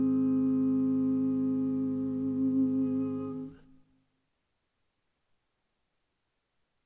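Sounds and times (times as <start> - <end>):
lead melody: 0.1 - 3.6.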